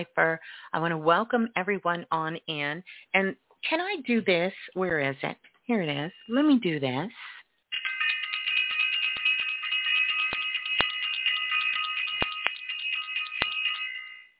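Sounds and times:
speech: 0.0 - 7.3
bell ringing: 7.7 - 14.3.

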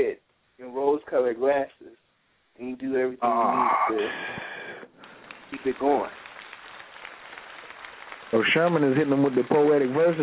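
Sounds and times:
speech: 1.1 - 1.8, 2.6 - 4.4, 5.6 - 6.2, 8.3 - 10.2
round of applause: 5.0 - 10.2.

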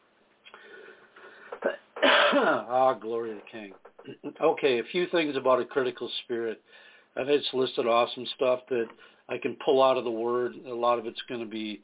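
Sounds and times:
person clearing throat: 1.5 - 2.8
speech: 1.6 - 11.8.

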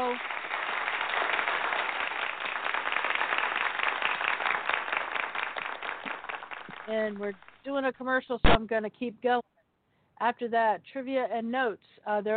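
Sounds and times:
audience applause: 0.0 - 7.1
speech: 6.9 - 9.4, 10.2 - 12.3.

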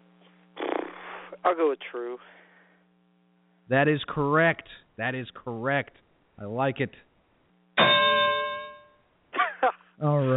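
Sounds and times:
speech: 1.4 - 2.4, 3.7 - 7.1, 10.0 - 10.3
quiz show correct-answer bell: 7.8 - 9.1.

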